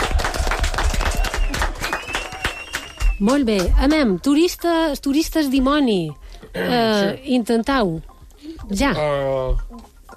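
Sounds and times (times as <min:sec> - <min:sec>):
group applause: 0:00.0 - 0:03.7
speech: 0:03.2 - 0:09.9.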